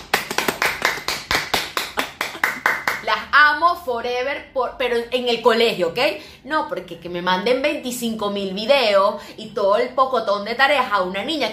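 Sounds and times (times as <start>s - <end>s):
applause sound effect of rhythmic hand claps: 0.0s - 3.1s
speech: 3.4s - 11.5s.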